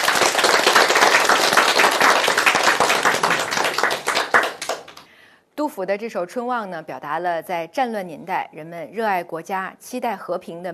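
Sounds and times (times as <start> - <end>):
classroom applause: 0.0 - 5.1
speech: 5.8 - 10.7.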